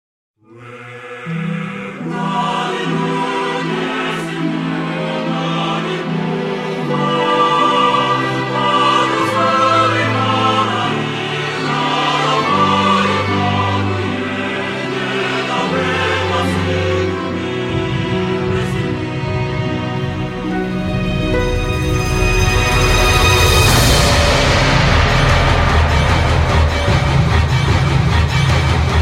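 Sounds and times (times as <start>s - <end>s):
symphonic poem: 0.4s - 29.0s.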